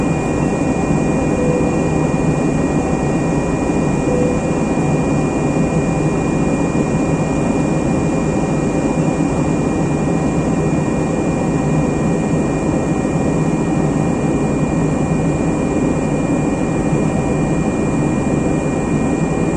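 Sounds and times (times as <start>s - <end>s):
aircraft engine noise in flight: 0.0s - 19.4s
signal chime in an aircraft cabin: 0.1s - 6.0s.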